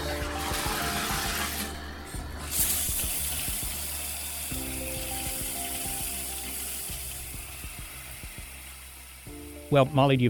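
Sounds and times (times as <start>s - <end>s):
shower running water: 0.0s - 10.2s
speech: 9.7s - 10.2s.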